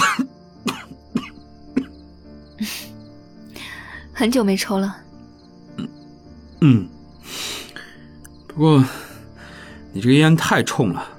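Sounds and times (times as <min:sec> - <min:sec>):
man coughing: 0:00.0 - 0:01.9
speech: 0:04.2 - 0:05.0, 0:06.6 - 0:06.9, 0:08.6 - 0:09.0, 0:10.0 - 0:11.1.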